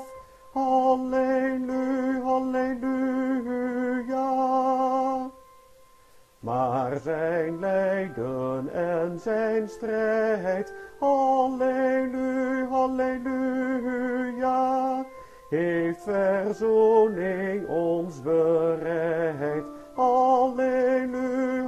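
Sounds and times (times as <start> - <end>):
tenor singing an Easter hymn: 0.0 - 5.5, 6.4 - 21.6.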